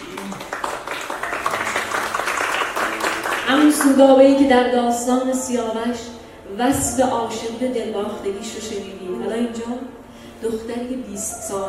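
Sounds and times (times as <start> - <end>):
applause: 0.0 - 4.1
speech: 3.5 - 11.6.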